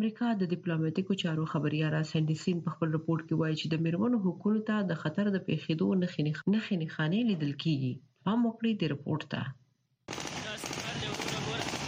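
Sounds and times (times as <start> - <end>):
speech: 0.0 - 9.6
celebratory automatic gunfire into the air at Kabul airport: 10.1 - 11.8.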